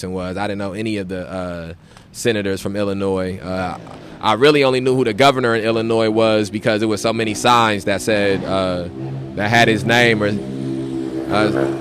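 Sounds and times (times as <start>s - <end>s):
speech: 0.0s - 10.6s, 11.3s - 11.8s
motorcycle engine passing: 3.4s - 11.8s.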